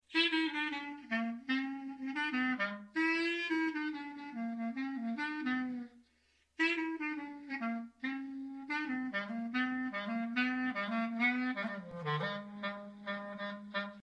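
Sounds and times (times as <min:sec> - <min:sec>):
clarinet: 0:00.0 - 0:14.0.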